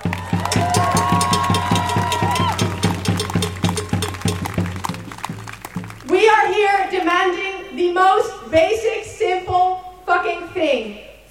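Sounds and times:
loud crowd cheering: 0:00.0 - 0:07.1
steady rhythmic crowd clapping: 0:00.0 - 0:07.1
speech: 0:07.1 - 0:11.1.

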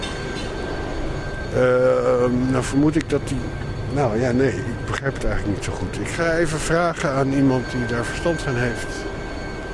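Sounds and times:
engine running: 0:00.0 - 0:09.7
speech: 0:01.5 - 0:09.1.

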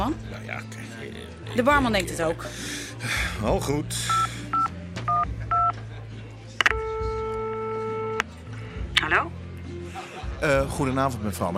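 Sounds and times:
speech: 0:00.0 - 0:04.5, 0:09.1 - 0:09.4, 0:10.4 - 0:11.5
touch-tone beeps as a telephone number is dialed: 0:04.1 - 0:05.7, 0:06.6 - 0:08.3
laughter: 0:09.7 - 0:10.7.

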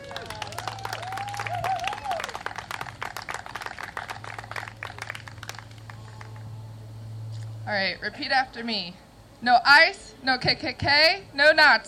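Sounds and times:
audience applause: 0:00.0 - 0:06.4
speech: 0:07.7 - 0:11.8.

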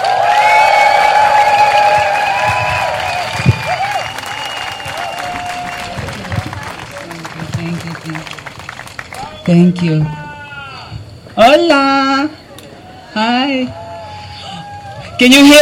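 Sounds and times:
audience applause: 0:00.0 - 0:10.2
speech: 0:09.5 - 0:10.2, 0:11.6 - 0:12.4, 0:13.2 - 0:13.8, 0:15.2 - 0:15.6.

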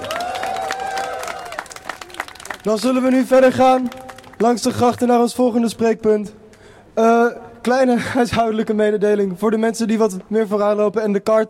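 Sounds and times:
crowd applause at outdoor rally: 0:00.0 - 0:04.6
speech: 0:02.6 - 0:06.4, 0:07.0 - 0:11.4.

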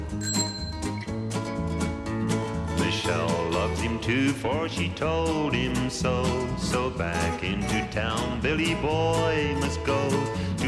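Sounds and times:
busy loud musical backing: 0:00.0 - 0:10.6
bicycle bell dinging: 0:00.1 - 0:01.3
speech: 0:03.1 - 0:10.5.

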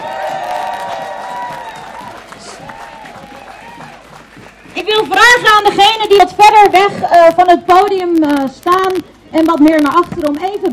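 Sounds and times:
crowd applause: 0:00.0 - 0:05.8
speech: 0:04.8 - 0:10.7.

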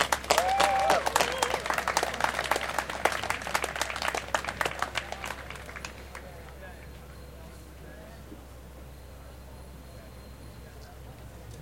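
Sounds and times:
audience applause for a speaker at a political event: 0:00.0 - 0:06.9.

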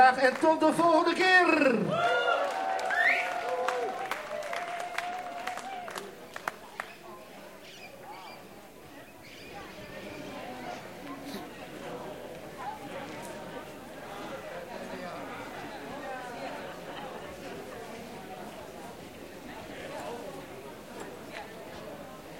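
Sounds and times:
speech: 0:00.1 - 0:02.2
audience applause: 0:01.9 - 0:07.0.

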